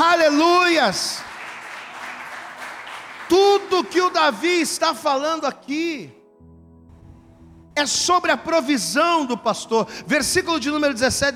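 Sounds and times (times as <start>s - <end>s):
audience applauding: 0.2s - 4.6s
speech: 0.8s - 1.2s, 3.3s - 6.2s, 7.8s - 11.3s.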